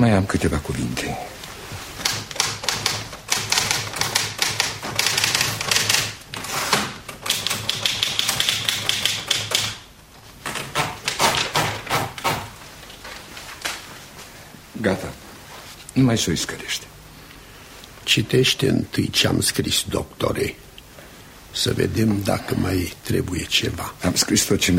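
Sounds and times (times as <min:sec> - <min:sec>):
speech: 0:00.0 - 0:01.3, 0:16.0 - 0:16.9, 0:18.1 - 0:20.6, 0:21.6 - 0:24.7
typewriter typing a letter: 0:02.0 - 0:09.8, 0:10.5 - 0:12.5.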